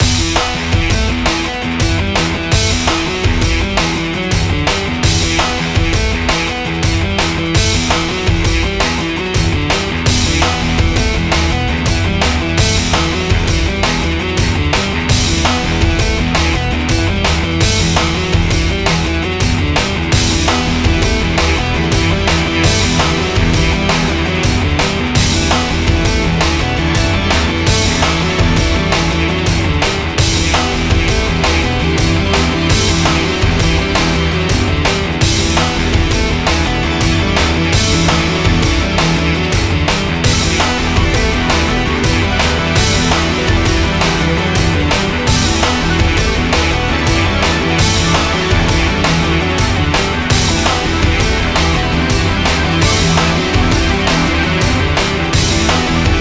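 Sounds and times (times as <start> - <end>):
guitar: 0.0 - 56.1.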